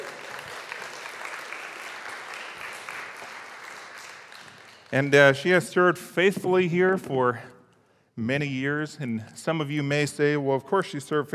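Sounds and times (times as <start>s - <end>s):
audience applause: 0.0s - 5.2s
speech: 4.9s - 7.5s, 8.2s - 11.3s.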